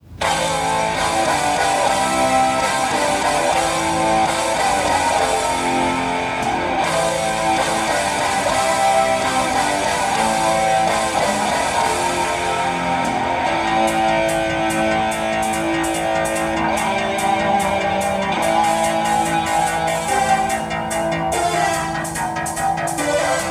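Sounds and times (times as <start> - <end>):
laptop music: 0.0 - 23.5.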